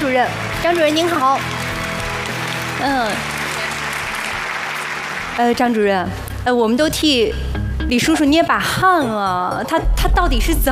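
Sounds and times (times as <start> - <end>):
studio audience applause on a health program: 0.0 - 5.9
speech: 0.1 - 1.6, 2.8 - 3.3, 5.4 - 10.6.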